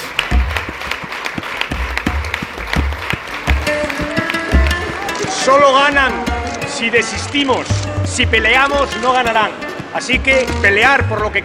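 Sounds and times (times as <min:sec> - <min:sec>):
audience applause: 0:00.0 - 0:07.8
speech: 0:05.5 - 0:11.4.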